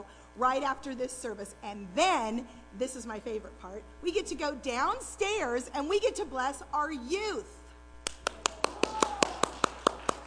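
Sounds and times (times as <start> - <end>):
speech: 0.4 - 7.6
single person clapping by hand during a church service: 8.0 - 10.2.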